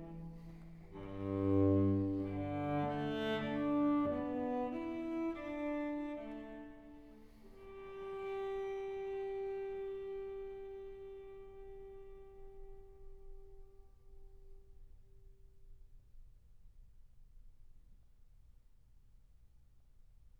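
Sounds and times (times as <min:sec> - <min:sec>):
solo cello suite: 0:00.0 - 0:14.7.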